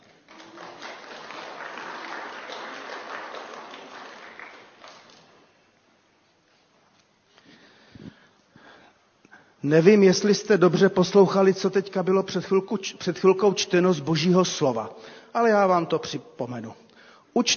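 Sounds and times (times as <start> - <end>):
audience applause: 0.0 - 5.5
speech: 9.6 - 17.5.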